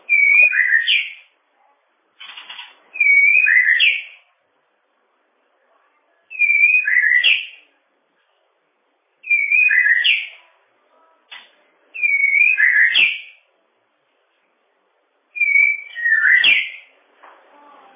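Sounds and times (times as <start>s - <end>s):
bird whistling song: 0.0s - 1.3s, 2.9s - 4.2s, 6.3s - 7.6s, 9.2s - 10.4s, 12.0s - 13.4s, 15.3s - 16.9s.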